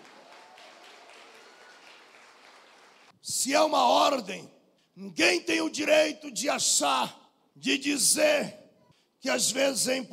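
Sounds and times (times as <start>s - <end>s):
audience applause: 0.0s - 3.1s
speech: 3.2s - 8.6s, 9.2s - 10.1s.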